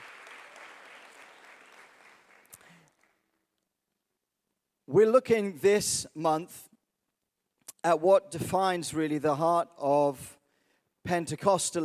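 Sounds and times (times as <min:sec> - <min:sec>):
church congregation applauding people being baptized during a sermon: 0:00.0 - 0:03.4
speech: 0:04.9 - 0:06.7, 0:07.8 - 0:10.4, 0:11.0 - 0:11.8.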